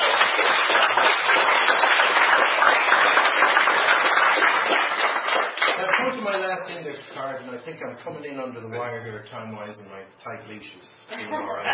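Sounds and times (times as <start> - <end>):
audience applause: 0.0 - 6.2
speech: 7.4 - 11.7.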